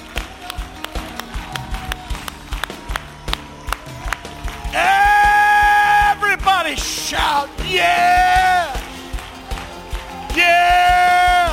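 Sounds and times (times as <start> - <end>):
audience clapping hands in rhythm: 0.0 - 11.5.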